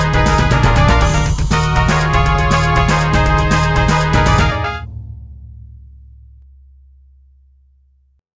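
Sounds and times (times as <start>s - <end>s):
brass: 0.0s - 4.9s
strings: 0.0s - 5.1s.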